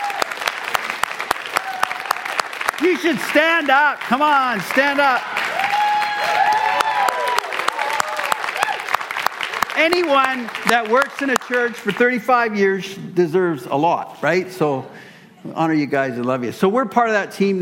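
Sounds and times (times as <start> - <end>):
audience applause: 0.0 - 12.2
speech: 2.8 - 5.4, 9.8 - 17.5.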